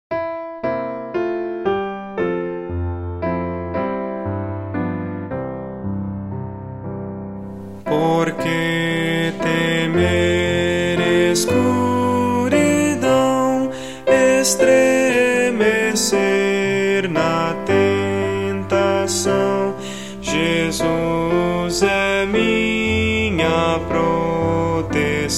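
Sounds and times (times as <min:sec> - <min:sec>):
piano: 0:00.1 - 0:25.3
person singing: 0:07.6 - 0:25.3.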